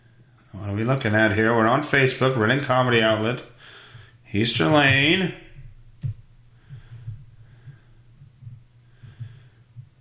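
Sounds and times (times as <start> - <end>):
speech: 0.6 - 5.4
heavy breathing: 3.5 - 4.3, 6.4 - 9.9.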